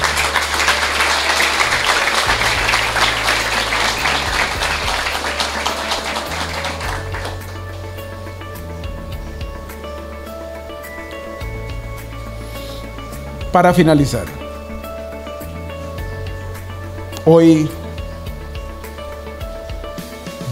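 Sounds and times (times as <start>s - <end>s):
audience applause: 0.0s - 7.8s
low musical drone: 0.0s - 20.5s
speech: 13.5s - 14.4s, 17.2s - 17.8s.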